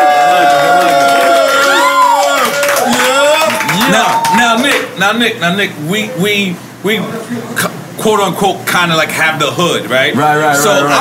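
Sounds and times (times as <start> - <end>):
loud crowd cheering, shouting and whooping: 0.0 - 4.9
clapping: 0.2 - 4.9
speech: 5.0 - 10.9.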